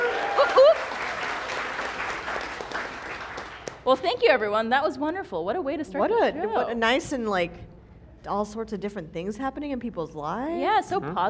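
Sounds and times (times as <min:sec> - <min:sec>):
audience applause: 0:00.0 - 0:03.8
speech: 0:03.9 - 0:11.2.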